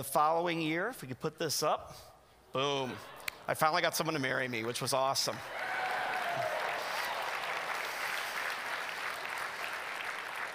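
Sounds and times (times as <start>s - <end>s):
speech: 0.0s - 5.7s
audience applause: 4.6s - 10.5s.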